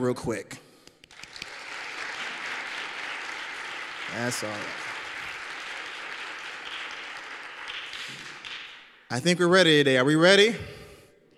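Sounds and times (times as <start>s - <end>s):
speech: 0.0s - 0.6s, 4.2s - 4.8s, 9.1s - 10.8s
crowd clapping: 1.1s - 9.1s.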